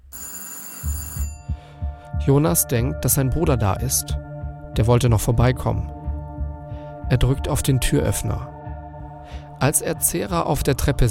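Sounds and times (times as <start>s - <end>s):
doorbell ringing: 0.1s - 1.6s
speech: 2.3s - 4.2s, 4.8s - 6.0s, 7.1s - 8.6s, 9.6s - 11.1s.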